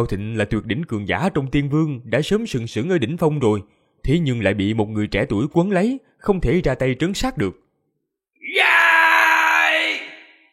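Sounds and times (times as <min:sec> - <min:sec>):
speech: 0:00.0 - 0:07.6
loud roar: 0:08.5 - 0:10.3.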